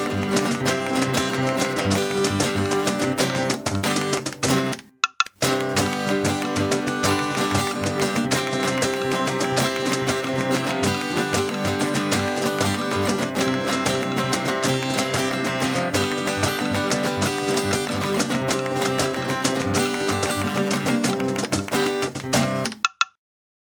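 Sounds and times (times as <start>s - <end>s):
rumba music: 0.0s - 22.7s.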